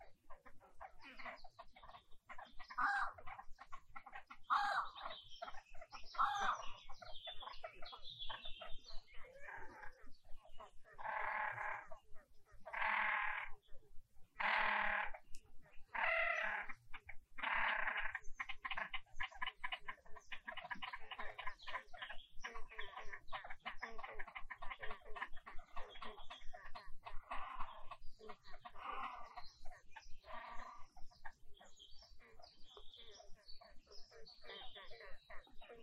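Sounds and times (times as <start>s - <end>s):
birds singing: 0.0s - 35.8s.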